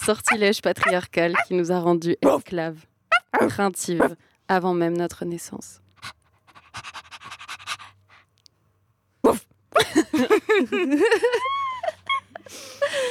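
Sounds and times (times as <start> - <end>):
speech: 0.0 - 6.2, 9.3 - 11.6
person imitating a panting dog: 0.3 - 1.5, 6.0 - 8.0
laughter: 9.8 - 13.1.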